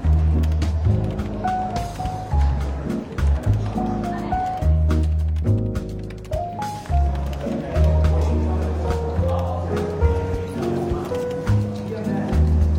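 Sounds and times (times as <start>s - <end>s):
murmuring chatter in a bookshop café: 0.0s - 12.7s
soft relaxed jazz with walking bass: 0.0s - 12.7s.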